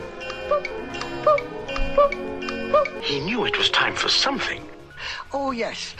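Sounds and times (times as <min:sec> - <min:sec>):
Winnie the Pooh's poo-coo cuckoo clock sound effect: 0:00.0 - 0:03.9
soft music: 0:00.0 - 0:05.9
speech: 0:03.0 - 0:05.9.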